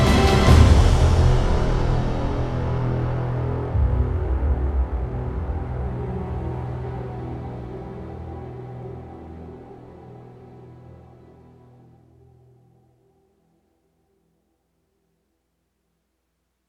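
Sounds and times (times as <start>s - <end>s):
soaring strings: 0.0s - 12.2s.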